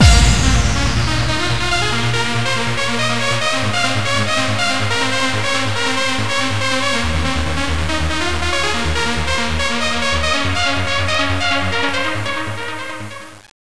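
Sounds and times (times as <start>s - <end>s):
rave music: 0.0s - 13.2s.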